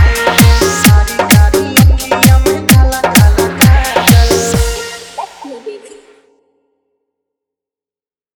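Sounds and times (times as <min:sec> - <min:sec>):
hard dholki drum mix: 0:00.0 - 0:06.2.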